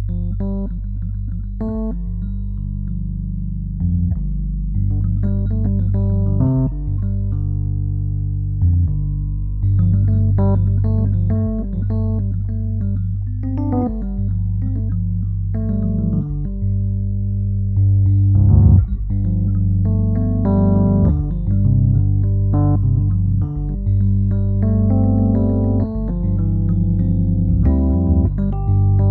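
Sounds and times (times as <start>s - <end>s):
warm Rhodes electric piano: 0.1s - 8.7s, 9.6s - 29.0s.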